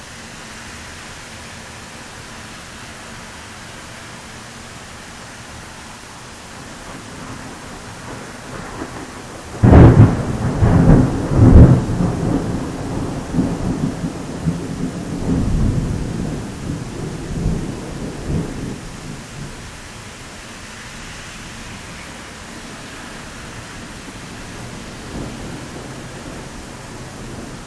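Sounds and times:
powerful Florida thunderstorm: 6.5s - 27.6s.

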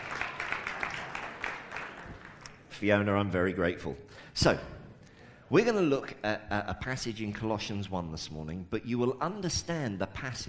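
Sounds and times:
soft applause from a church congregation during a service: 0.0s - 2.7s
speech: 2.8s - 4.8s, 5.5s - 10.4s.

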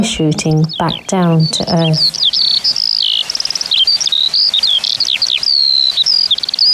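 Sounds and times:
speech: 0.0s - 2.8s
bird singing during hovering song flight: 0.0s - 6.7s.

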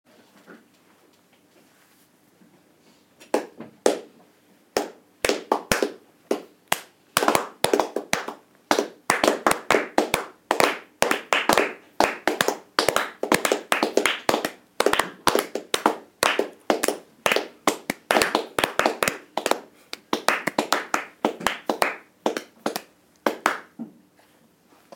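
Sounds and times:
clapping: 4.8s - 23.8s.

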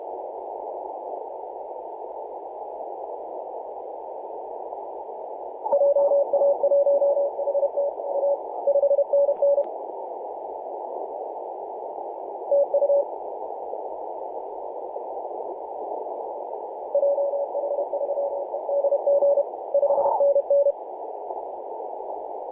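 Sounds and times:
CW morse code tones on 10.113 MHz: 5.7s - 9.6s, 17.0s - 20.7s.

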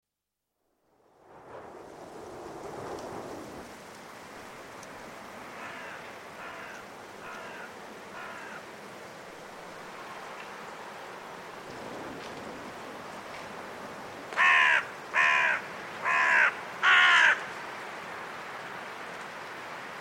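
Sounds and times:
group of carrion crows cawing in trees before roosting in winter at Woodchester Park, Gloucestershire: 5.5s - 8.7s, 14.3s - 17.5s.

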